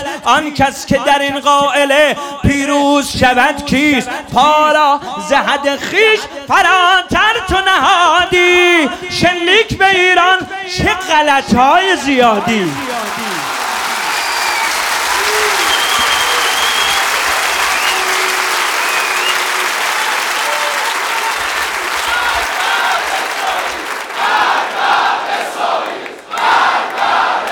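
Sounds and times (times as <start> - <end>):
speech: 0.2 - 13.5
large crowd clapping at a religious gathering: 12.3 - 27.5
many voices chanting together at a religious gathering: 21.8 - 27.5.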